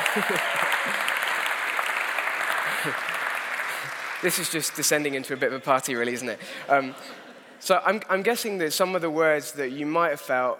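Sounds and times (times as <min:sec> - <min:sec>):
audience round of applause: 0:00.0 - 0:05.4
speech: 0:00.2 - 0:01.1, 0:02.8 - 0:03.1, 0:04.2 - 0:10.5.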